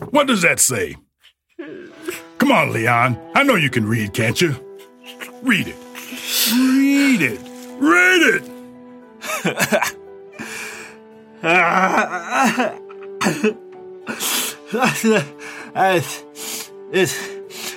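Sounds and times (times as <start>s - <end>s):
speech: 0.1s - 8.5s, 9.4s - 10.0s, 11.4s - 16.3s, 16.9s - 17.3s
person bawling and mumbling while crying: 1.6s - 2.4s, 6.1s - 8.4s, 11.4s - 13.0s
laughter: 9.2s - 10.0s, 11.5s - 13.6s.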